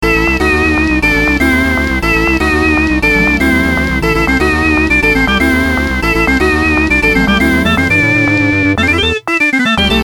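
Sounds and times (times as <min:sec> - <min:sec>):
Halloween music: 0:00.2 - 0:10.0.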